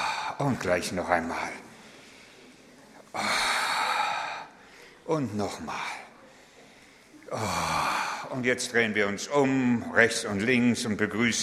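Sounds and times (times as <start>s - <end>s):
people exhaling during a standing stretch: 0.0s - 0.4s, 1.7s - 5.1s, 6.2s - 8.3s
speech: 0.4s - 1.6s, 5.1s - 6.0s, 7.3s - 11.4s.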